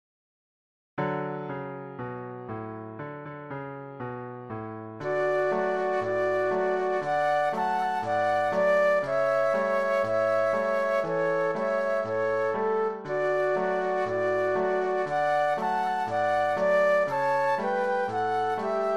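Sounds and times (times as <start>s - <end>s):
piano: 1.0s - 18.9s
flute duet: 5.0s - 18.9s.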